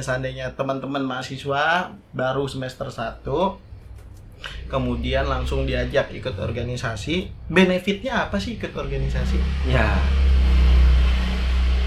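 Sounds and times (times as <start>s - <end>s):
speech: 0.0s - 3.7s, 4.4s - 10.4s
loud motorbike passing: 4.5s - 11.8s.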